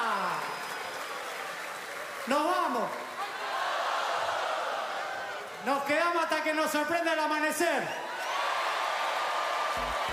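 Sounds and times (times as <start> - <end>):
audience applause: 0.0 - 5.7, 8.1 - 10.1
speech: 2.3 - 3.1, 5.6 - 8.0.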